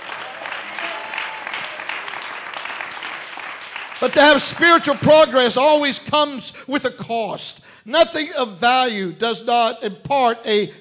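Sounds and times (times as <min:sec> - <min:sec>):
audience clapping: 0:00.0 - 0:05.6
speech: 0:04.0 - 0:10.8.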